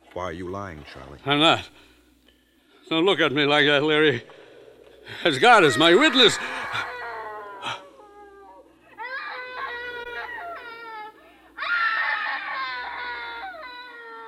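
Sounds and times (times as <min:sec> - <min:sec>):
speech: 0:00.2 - 0:01.9, 0:02.9 - 0:04.4, 0:05.0 - 0:06.8
woman screaming: 0:05.6 - 0:13.6.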